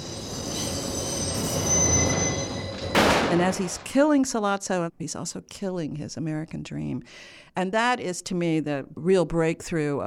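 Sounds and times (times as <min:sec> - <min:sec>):
metallic screech of train wheels squealing: 0:00.0 - 0:03.0
speech: 0:03.3 - 0:10.0.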